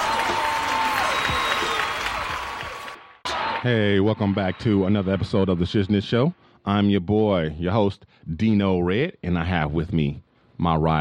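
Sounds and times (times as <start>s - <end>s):
studio audience applause opening a talk show in Los Angeles: 0.0s - 5.6s
speech: 3.6s - 11.0s.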